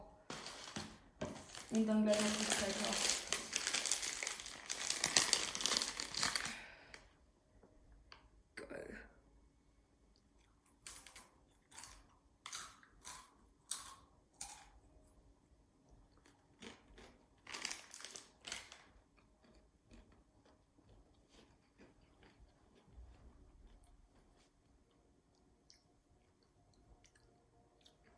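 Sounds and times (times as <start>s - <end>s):
crinkly rustle: 0.3s - 6.6s
Takis tortilla chip crunching: 1.6s - 6.6s, 10.7s - 14.8s, 16.1s - 24.5s
speech: 1.7s - 3.2s.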